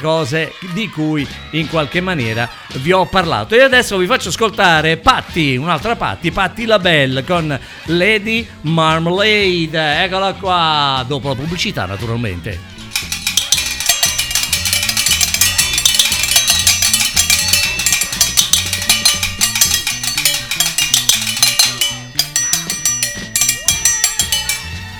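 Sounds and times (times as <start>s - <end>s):
speech: 0.0s - 12.7s
pots banged as percussion: 12.8s - 24.9s.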